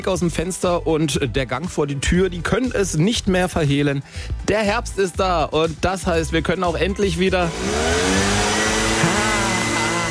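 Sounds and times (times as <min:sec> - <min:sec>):
speech: 0:00.0 - 0:08.4
leaf blowers clearing autumn leaves from a sidewalk: 0:07.4 - 0:10.1.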